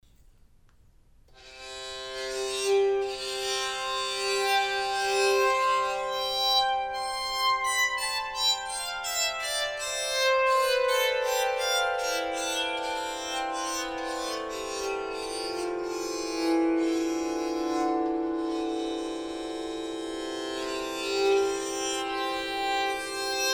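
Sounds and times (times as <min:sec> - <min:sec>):
baritone bowed psaltery: 0:01.5 - 0:23.5.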